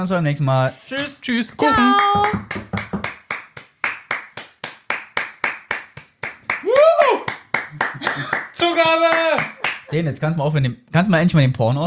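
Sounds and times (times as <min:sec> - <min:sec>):
speech: 0:00.0 - 0:02.6, 0:09.9 - 0:11.8
hand clapping: 0:01.6 - 0:09.9.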